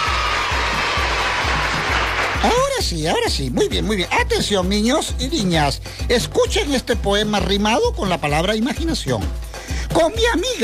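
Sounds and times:
applause: 0.0s - 2.8s
speech: 2.4s - 10.6s.

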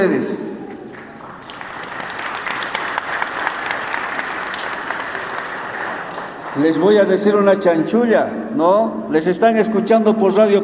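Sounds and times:
speech: 0.0s - 0.5s, 6.6s - 10.6s
audience applause: 0.9s - 7.0s.

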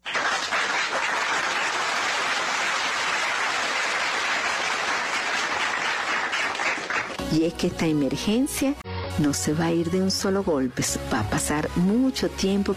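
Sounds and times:
applause: 0.0s - 7.3s
speech: 7.3s - 12.7s.

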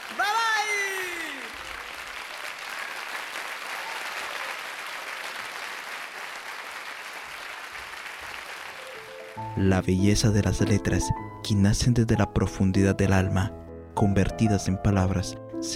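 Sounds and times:
crowd applauding: 0.0s - 9.6s
speech: 9.4s - 15.7s.

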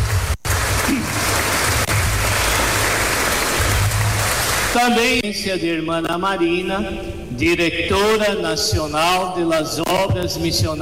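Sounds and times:
crowd applauding: 0.0s - 5.0s
speech: 4.8s - 10.8s.

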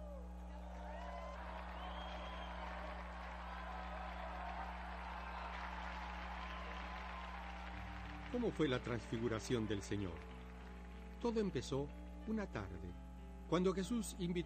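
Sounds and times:
audience applause: 0.6s - 11.8s
speech: 8.3s - 10.4s, 11.2s - 14.4s.

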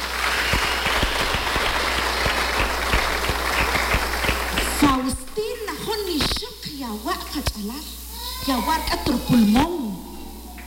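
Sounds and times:
audience applause: 0.0s - 5.8s
speech: 6.9s - 9.8s.

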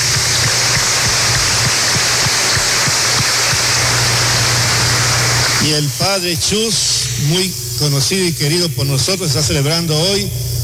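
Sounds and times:
audience applauding: 0.0s - 5.6s
speech: 5.7s - 10.4s.

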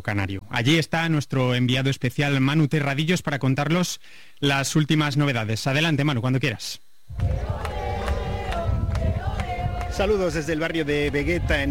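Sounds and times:
speech: 0.0s - 7.7s, 10.0s - 11.7s
low rumble: 7.1s - 11.7s
crowd murmuring in the Vegueta district of Las Palmas de Gran Canaria: 7.2s - 11.7s.

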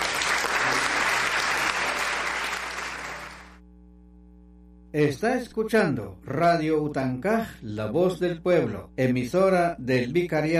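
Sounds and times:
loud applause: 0.0s - 3.6s
faint low hum: 0.0s - 10.5s
speech: 5.0s - 10.5s.

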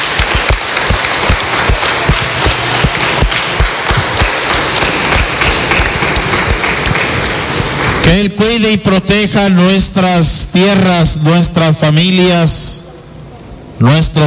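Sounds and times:
crowd applauding: 0.0s - 8.1s
speech: 8.2s - 12.8s, 13.8s - 14.2s.

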